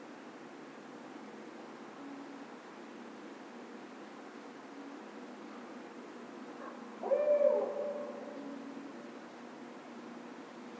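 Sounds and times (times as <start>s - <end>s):
barred owl hooting: 7.0s - 8.7s.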